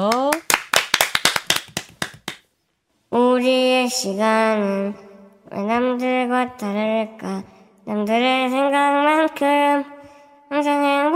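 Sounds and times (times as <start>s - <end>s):
clapping: 0.1s - 2.4s
speech: 3.4s - 11.1s.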